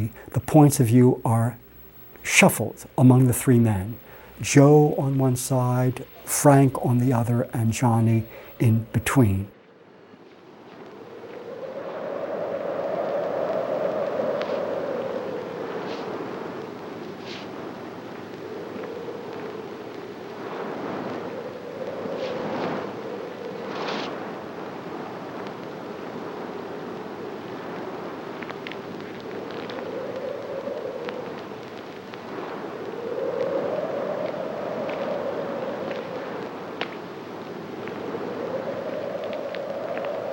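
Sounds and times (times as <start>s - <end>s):
speech: 0.0s - 1.6s, 2.2s - 9.6s
wind blowing: 0.0s - 40.3s.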